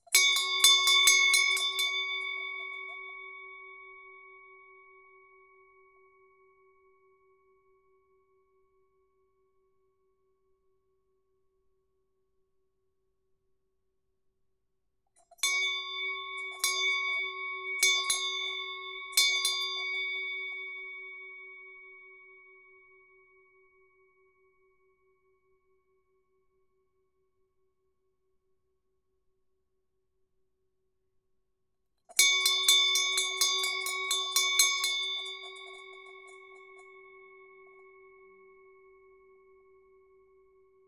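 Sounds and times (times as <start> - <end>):
bell: 0.0 - 8.8, 15.2 - 25.0, 32.1 - 40.8.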